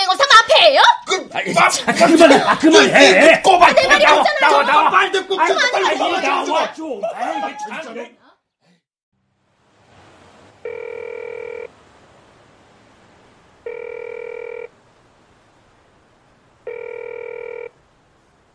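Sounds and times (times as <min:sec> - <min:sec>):
speech: 0:00.7 - 0:08.2
laughter: 0:01.3 - 0:08.1
telephone ringing unanswered: 0:10.6 - 0:11.7, 0:13.6 - 0:14.7, 0:16.7 - 0:17.7.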